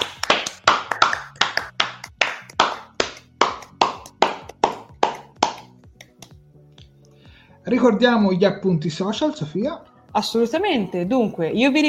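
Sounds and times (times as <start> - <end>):
audience hand claps: 0.0 - 7.0
speech: 7.7 - 11.8.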